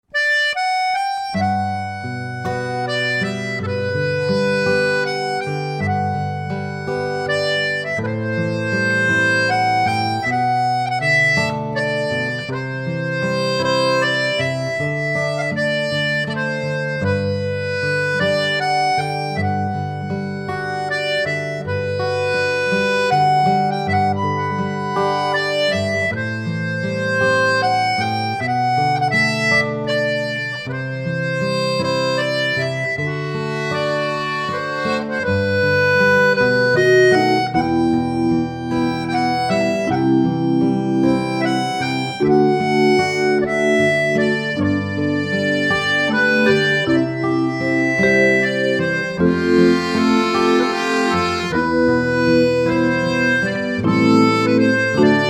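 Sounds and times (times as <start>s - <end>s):
theatre accordionist playing accordion: 0.0s - 55.2s.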